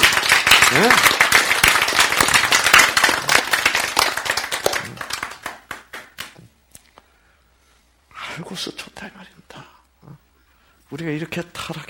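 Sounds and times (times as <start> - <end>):
audience applause: 0.0 - 6.4
speech: 0.8 - 1.1, 10.9 - 11.8.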